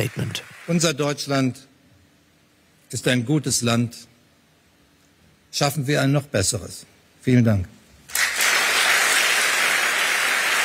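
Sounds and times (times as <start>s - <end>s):
applause: 0.0s - 1.2s, 8.1s - 10.6s
speech: 0.0s - 1.7s, 2.9s - 4.1s, 5.5s - 7.8s
standing ovation: 8.1s - 10.6s.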